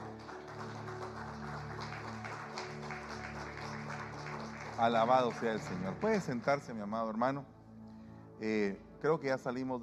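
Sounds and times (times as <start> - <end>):
audience applause: 0.0 - 6.6
speech: 4.8 - 7.5, 8.4 - 9.8.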